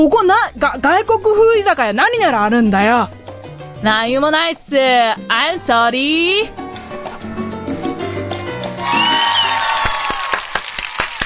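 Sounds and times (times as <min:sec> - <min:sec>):
speech: 0:00.0 - 0:03.2, 0:03.8 - 0:06.6
person whooping: 0:08.8 - 0:10.6
crowd applause: 0:08.8 - 0:11.2.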